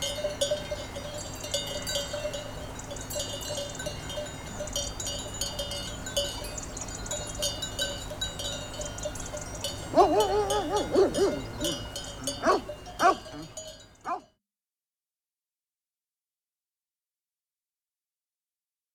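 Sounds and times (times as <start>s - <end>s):
bells: 0.0s - 14.2s.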